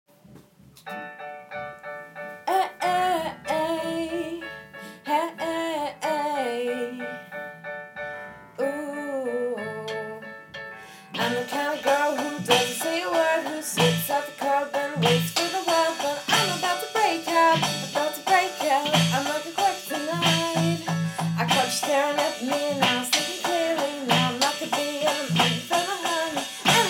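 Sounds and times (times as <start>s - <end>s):
song intro and verse with backing track: 0.8s - 8.7s, 9.5s - 26.8s.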